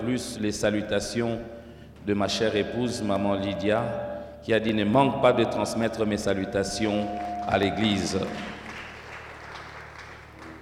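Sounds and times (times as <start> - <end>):
speech: 0.0 - 8.5
church congregation clapping hesitantly: 6.9 - 10.6.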